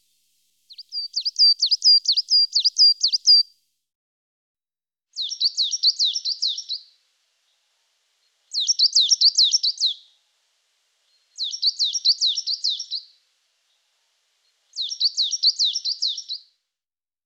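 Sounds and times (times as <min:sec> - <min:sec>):
coal tit singing: 0:00.0 - 0:03.4, 0:05.2 - 0:06.9, 0:08.3 - 0:10.2, 0:11.1 - 0:13.8, 0:14.5 - 0:16.5.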